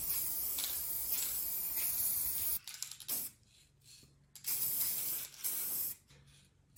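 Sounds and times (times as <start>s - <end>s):
spray paint hissing from an aerosol can onto a model airplane: 0.0s - 3.3s, 4.4s - 6.0s.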